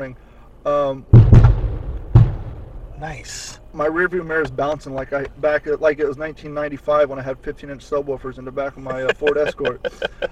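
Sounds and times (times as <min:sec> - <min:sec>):
speech: 0:00.0 - 0:01.4, 0:03.0 - 0:10.3
long gun firing with a bang: 0:01.1 - 0:02.9
laughter: 0:08.7 - 0:10.3.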